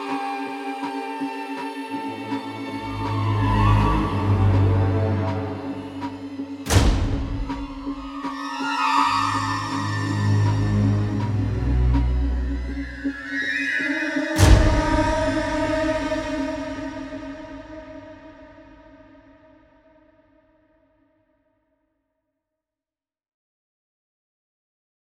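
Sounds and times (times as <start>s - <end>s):
suspenseful classic horror sci-fi music: 0.0s - 20.0s.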